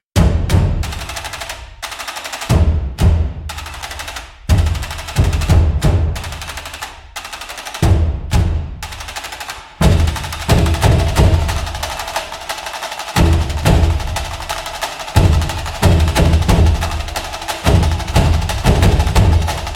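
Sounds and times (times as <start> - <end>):
Japanese drums playing: 0.0 - 19.7.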